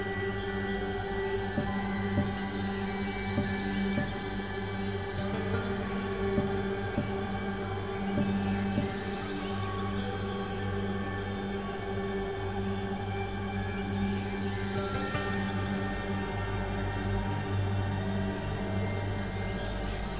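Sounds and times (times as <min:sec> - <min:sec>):
music: 0:00.0 - 0:20.1.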